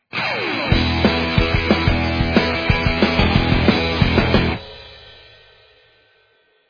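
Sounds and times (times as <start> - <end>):
stinger ident: 0.2 - 5.4.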